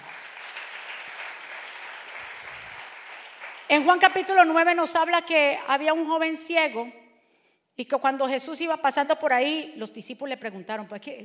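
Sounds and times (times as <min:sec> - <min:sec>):
audience applause: 0:00.0 - 0:03.7
speech: 0:03.7 - 0:07.0, 0:07.8 - 0:11.2.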